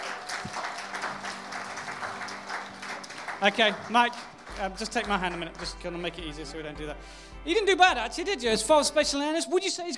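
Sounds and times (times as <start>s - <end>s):
audience applause: 0.0s - 6.3s
speech: 3.4s - 9.9s.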